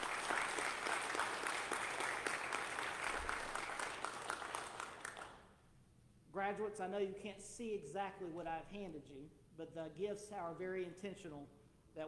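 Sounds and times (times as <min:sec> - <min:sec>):
audience applause for graduates: 0:00.0 - 0:05.4
speech: 0:06.5 - 0:12.0.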